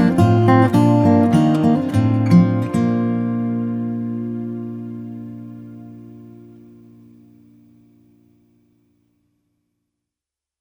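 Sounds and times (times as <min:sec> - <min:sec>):
acoustic guitar solo lullaby: 0:00.0 - 0:07.8.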